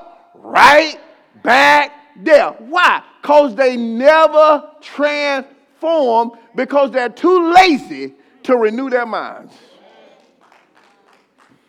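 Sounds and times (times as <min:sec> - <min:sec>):
speech: 0:00.6 - 0:09.7
scattered hand claps: 0:10.2 - 0:11.6.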